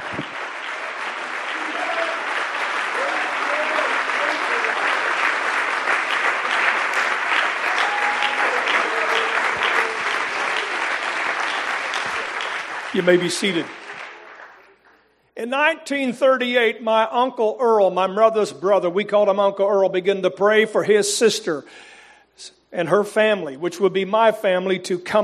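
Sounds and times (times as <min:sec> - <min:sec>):
loud sustained applause from a large crowd: 0:00.0 - 0:15.2
faint cheers and voices: 0:01.5 - 0:05.0, 0:07.6 - 0:11.1
speech: 0:13.0 - 0:13.8, 0:15.4 - 0:25.2.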